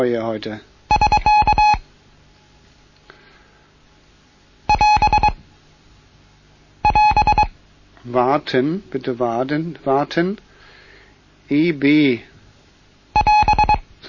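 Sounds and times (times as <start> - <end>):
speech: 0.0 - 0.7, 8.0 - 10.5, 11.5 - 12.3
Morse code end-of-traffic signal: 0.9 - 1.8, 4.7 - 5.4, 6.8 - 7.5, 13.2 - 13.8.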